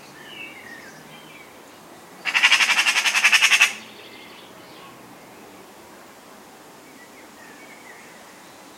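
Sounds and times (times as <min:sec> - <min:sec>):
Eurasian magpie Pica pica chattering rattles: 0:02.2 - 0:03.8.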